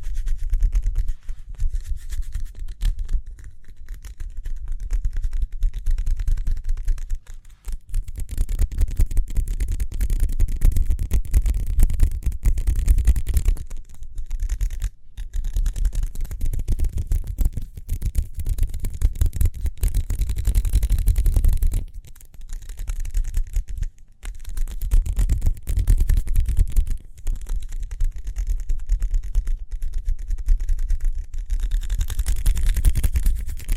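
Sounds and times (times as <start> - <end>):
fast hand rubbing and scratching: 0.0 - 33.7.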